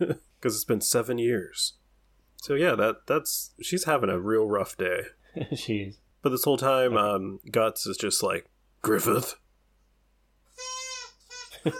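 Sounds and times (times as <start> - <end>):
speech: 0.0 - 1.8, 2.4 - 9.4
dog squeaking a squeaky toy: 10.5 - 11.7.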